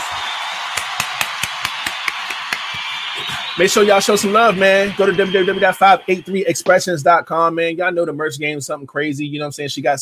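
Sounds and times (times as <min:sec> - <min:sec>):
round of applause: 0:00.0 - 0:06.7
speech: 0:03.6 - 0:09.9.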